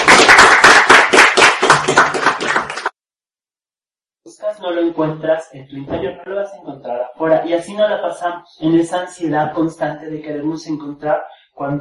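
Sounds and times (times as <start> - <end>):
audience applause: 0.0 - 2.9
speech: 4.6 - 11.7.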